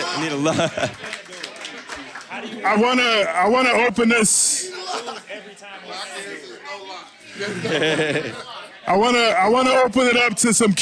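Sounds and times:
audience clapping: 0.0s - 3.0s
laughter: 0.0s - 3.6s, 4.6s - 6.4s, 7.3s - 9.5s
speech: 0.2s - 1.1s, 2.4s - 10.8s.

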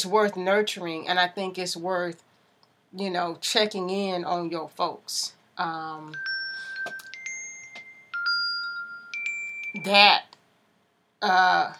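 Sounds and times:
speech: 0.0s - 2.3s, 2.9s - 7.0s, 9.8s - 10.3s, 11.2s - 11.7s
smartwatch notification beep and ding: 6.1s - 10.2s.

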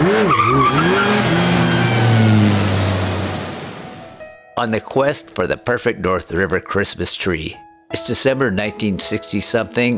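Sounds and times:
veterinary van driving on a road: 0.0s - 4.2s
speech: 4.6s - 9.9s.

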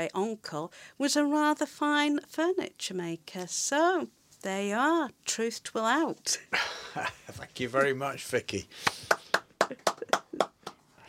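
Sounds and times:
speech: 0.0s - 9.9s
small studio audience smattering of applause: 8.8s - 10.8s.

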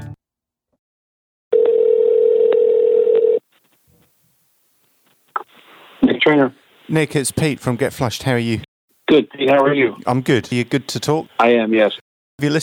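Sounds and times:
telephone dial tone: 1.6s - 3.4s
speech: 6.9s - 12.6s.

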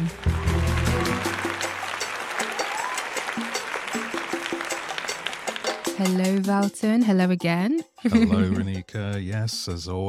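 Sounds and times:
applause: 0.0s - 6.5s
speech: 6.0s - 10.0s
laughter: 8.0s - 9.2s.

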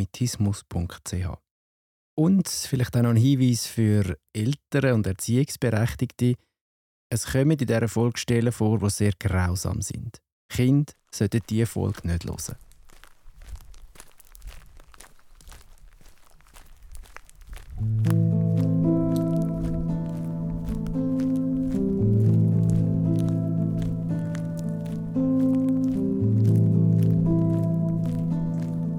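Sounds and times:
speech: 0.0s - 1.4s, 2.2s - 6.5s, 7.1s - 12.6s
footsteps squishing and crunching on a forest path: 10.9s - 28.9s
sustained tonal musical passage: 17.8s - 28.9s.

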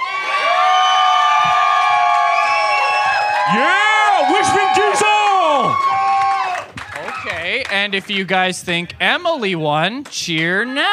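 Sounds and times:
audience cheering for a contestant: 0.0s - 8.4s
speech: 7.7s - 10.9s.

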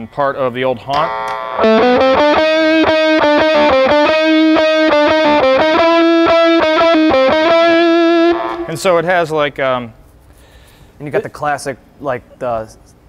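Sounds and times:
speech: 0.0s - 2.5s, 8.8s - 10.0s, 11.0s - 13.0s
electric guitar through fuzz pedal with gain maxed playing a riff: 1.0s - 9.0s.

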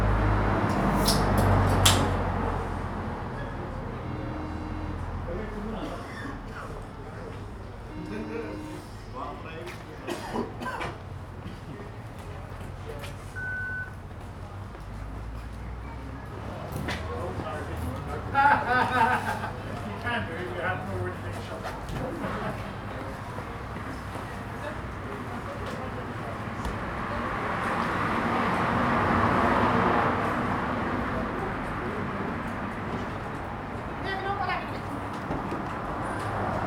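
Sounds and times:
low rumble of traffic: 0.0s - 36.6s
voices chattering outside a small bar: 2.6s - 13.4s, 15.6s - 36.6s
brief high tone: 4.0s - 5.3s, 7.9s - 9.1s
laughter: 8.0s - 8.8s, 18.1s - 20.3s.

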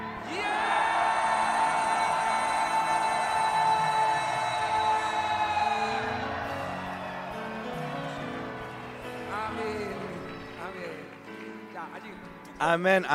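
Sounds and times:
church congregation at a Lunar New Year conference giving a shout of victory: 0.0s - 10.1s.

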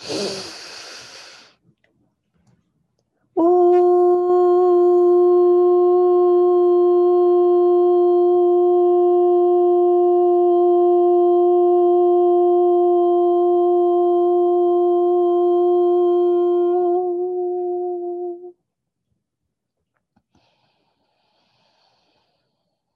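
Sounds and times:
sustained chanted ooh tone: 3.4s - 18.6s.

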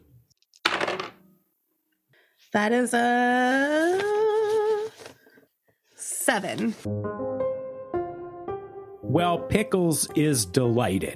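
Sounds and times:
dice rolling: 0.4s - 1.2s
speech: 2.5s - 4.3s, 6.3s - 7.6s, 9.1s - 11.1s.

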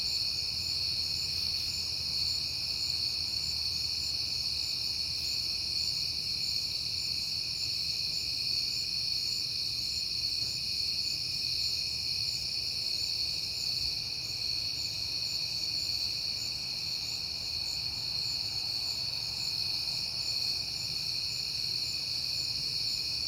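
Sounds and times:
cricket chorus: 0.0s - 23.2s.

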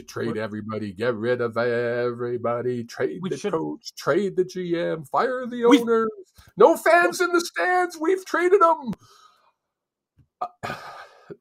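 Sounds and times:
speech: 0.0s - 9.2s, 10.4s - 11.3s
cough: 10.4s - 11.1s.

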